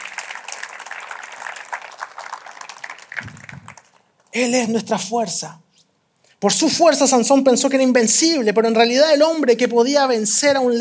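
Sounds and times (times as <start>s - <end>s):
audience applauding: 0.0s - 4.3s
speech: 4.4s - 5.6s, 6.4s - 10.8s.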